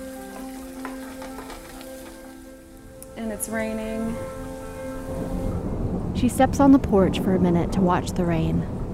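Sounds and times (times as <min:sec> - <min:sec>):
food sizzling in a hot pan while cooking a burrito: 0:00.0 - 0:02.8
speech: 0:03.2 - 0:08.8.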